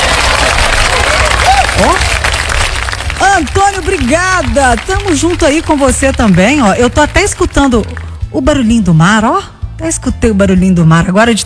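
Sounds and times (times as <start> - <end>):
applause: 0.0 - 8.2
speech: 1.8 - 2.1, 3.4 - 11.4.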